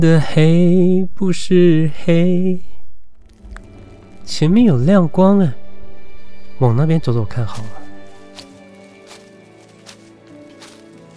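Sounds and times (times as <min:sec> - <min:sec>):
speech: 0:00.0 - 0:02.8, 0:04.3 - 0:05.6, 0:06.6 - 0:07.8
footsteps: 0:07.5 - 0:11.1.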